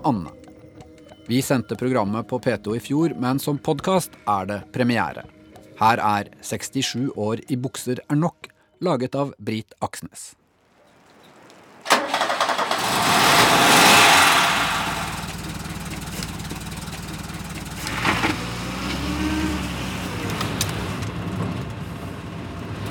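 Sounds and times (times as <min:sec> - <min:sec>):
speech: 0:00.0 - 0:00.4, 0:01.3 - 0:10.4
orange 1975 Ford Taunus coupé engine starting and idling: 0:11.8 - 0:22.8.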